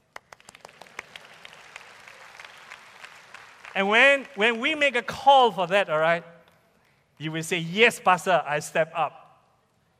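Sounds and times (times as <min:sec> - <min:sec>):
audience clapping: 0:00.0 - 0:05.1
speech: 0:03.8 - 0:06.3, 0:07.2 - 0:09.2.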